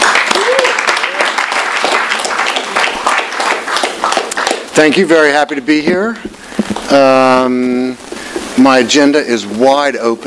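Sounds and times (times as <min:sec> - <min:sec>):
audience applauding a speaker at an evening event: 0:00.0 - 0:05.6
speech: 0:04.8 - 0:08.0, 0:08.6 - 0:10.2.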